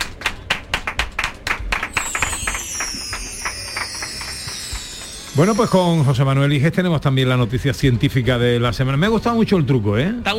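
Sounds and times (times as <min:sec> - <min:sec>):
people clapping: 0:00.0 - 0:06.2
speech: 0:05.4 - 0:10.3.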